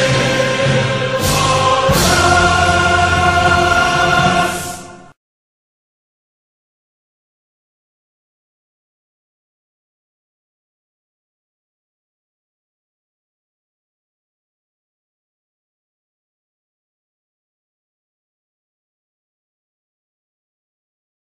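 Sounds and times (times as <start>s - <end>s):
national anthem with sung lyrics: 0.0s - 5.2s.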